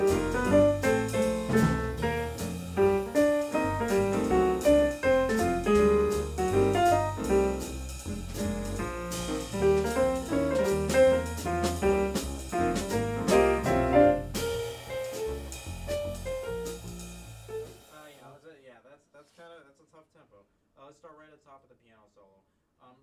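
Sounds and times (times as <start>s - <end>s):
jazz music: 0.0s - 18.2s.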